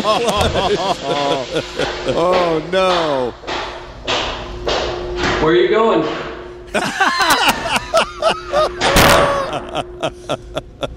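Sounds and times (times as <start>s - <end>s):
laughter: 0.0s - 2.7s, 6.7s - 10.9s
speech: 0.0s - 3.5s, 5.4s - 10.9s
violent door slam: 0.4s - 0.8s, 8.8s - 9.5s.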